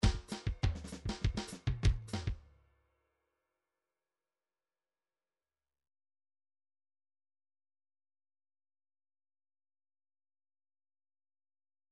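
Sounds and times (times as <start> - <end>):
latin MIDI groove: 0.0 - 2.4.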